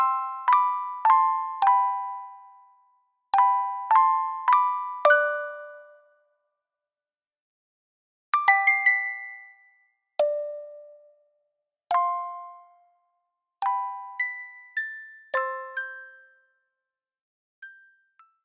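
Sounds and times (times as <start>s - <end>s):
soulful music box melody: 0.0s - 6.3s, 8.4s - 11.2s, 11.9s - 13.0s, 13.6s - 16.6s, 17.6s - 18.4s.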